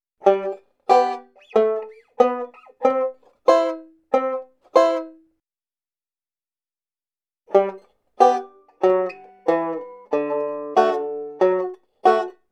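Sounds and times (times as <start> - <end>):
diatonic banjo passing lines: 0.2 - 5.2, 7.5 - 12.4.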